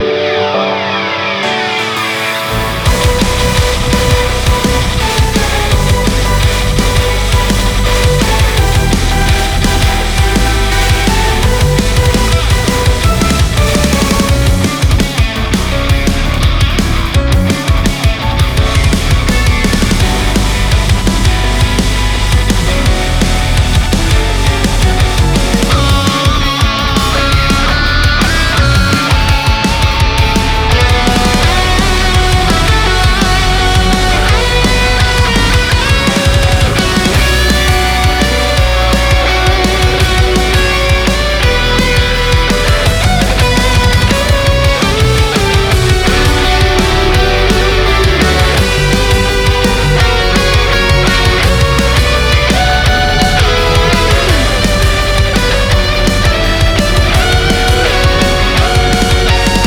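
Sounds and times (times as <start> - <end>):
battle background music from a game: 0.0 - 59.6.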